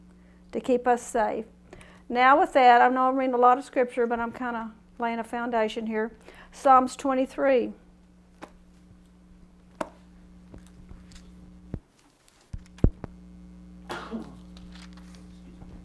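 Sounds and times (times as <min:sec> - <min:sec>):
steady low electrical hum: 0:00.0 - 0:15.8
speech: 0:00.5 - 0:07.8
sneeze: 0:13.8 - 0:14.5.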